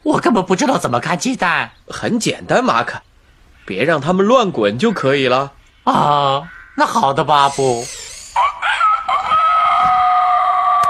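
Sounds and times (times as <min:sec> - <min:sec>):
speech: 0:00.0 - 0:03.1, 0:03.7 - 0:08.1
rooster crowing: 0:07.5 - 0:10.8.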